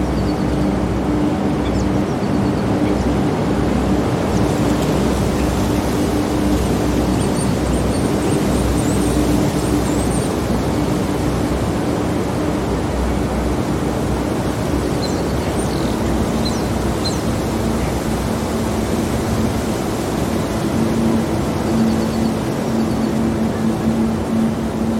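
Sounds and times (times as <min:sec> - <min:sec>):
flowing water rushing: 0:00.0 - 0:24.9
low droning hum: 0:00.0 - 0:24.9
soft high bird chirps: 0:00.0 - 0:24.9.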